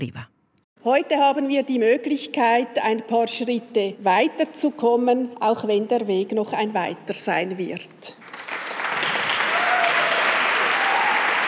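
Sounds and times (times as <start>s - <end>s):
speech: 0.0s - 8.4s
applause in parliament chamber: 8.2s - 11.4s
faint shouts and cheers: 9.4s - 11.4s.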